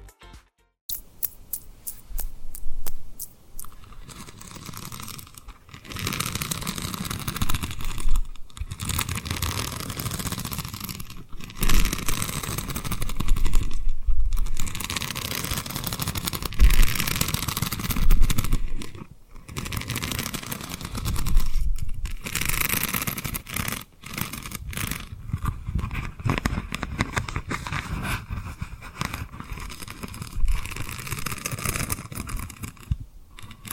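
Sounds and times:
rubbing on rhinestones: 0:00.9 - 0:33.7.

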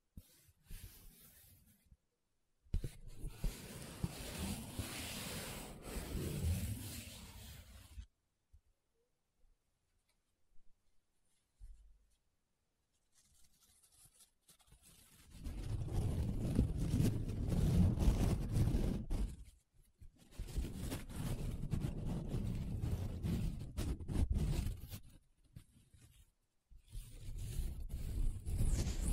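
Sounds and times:
paper being rubbed and scratched: 0:02.8 - 0:08.0, 0:12.9 - 0:19.6, 0:20.2 - 0:26.2, 0:26.8 - 0:29.1.

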